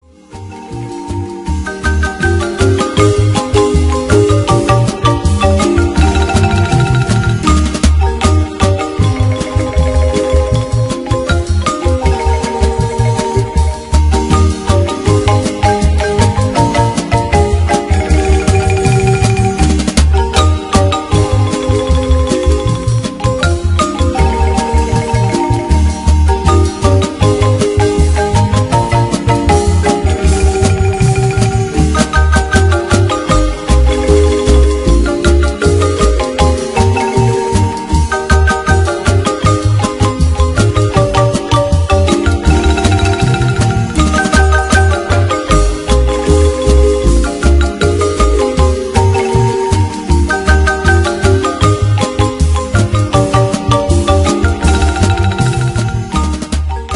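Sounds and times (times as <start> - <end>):
marimba: 0.0 - 56.9.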